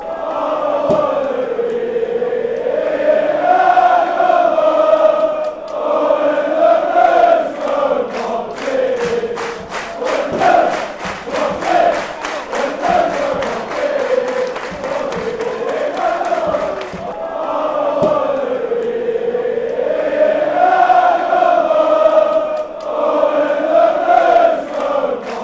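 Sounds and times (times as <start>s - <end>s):
fans chanting a slower blues: 0.0s - 25.4s.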